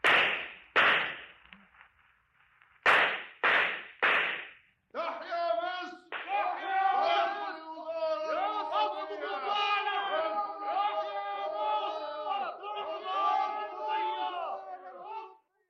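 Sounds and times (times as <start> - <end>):
cracking blows as a crowd beats men: 0.0 - 4.7
crowd shouting and yelling: 5.0 - 15.5.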